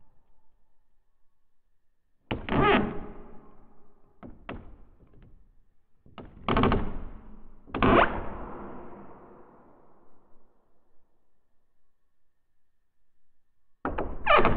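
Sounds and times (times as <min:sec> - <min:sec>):
wooden door: 0:02.3 - 0:03.4, 0:04.1 - 0:08.3, 0:13.8 - 0:14.5.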